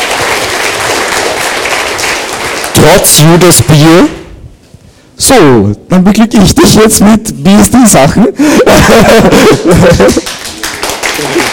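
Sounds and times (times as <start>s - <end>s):
audience applause at a ranking announcement: 0.0s - 3.0s, 10.0s - 11.5s
speech: 2.8s - 4.2s, 5.3s - 10.4s, 11.2s - 11.5s
laughter: 8.4s - 11.5s.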